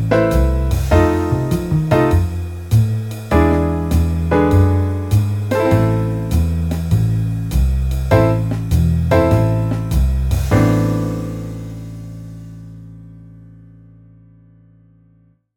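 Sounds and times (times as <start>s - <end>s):
A minor chord progression: 0.0s - 6.8s, 8.0s - 13.0s.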